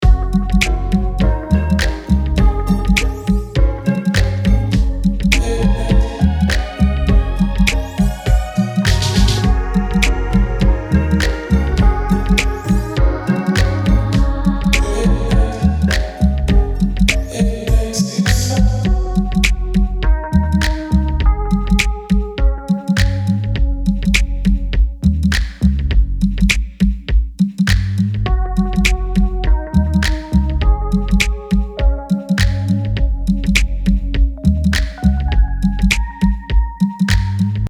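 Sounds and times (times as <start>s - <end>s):
active R and B music: 0.0s - 37.6s.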